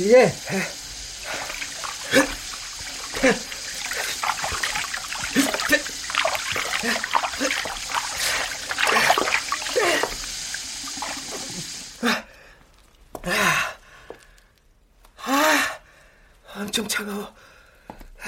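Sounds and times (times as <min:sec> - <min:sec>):
speech: 0:00.0 - 0:00.8, 0:03.2 - 0:03.5, 0:16.8 - 0:17.4
water running from tap: 0:00.0 - 0:12.2.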